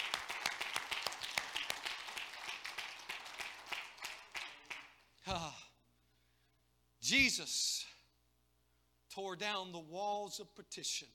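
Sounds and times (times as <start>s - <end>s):
audience clapping hands: 0.0s - 5.1s
speech: 5.3s - 5.6s, 7.1s - 7.9s, 9.2s - 11.1s.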